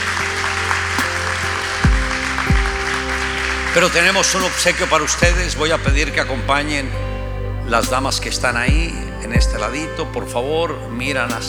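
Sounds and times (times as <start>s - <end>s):
audience applause: 0.0s - 5.4s
low sustained hum: 0.0s - 11.4s
deep booming thumps sweeping downward: 1.8s - 3.1s, 5.2s - 6.5s, 7.8s - 9.8s
speech: 3.8s - 7.1s, 7.7s - 11.4s.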